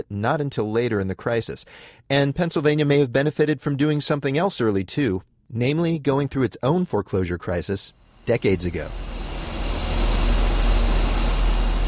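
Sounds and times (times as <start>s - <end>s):
speech: 0.0s - 9.2s
exhaust from a Pittsburgh steel mill: 8.2s - 11.8s.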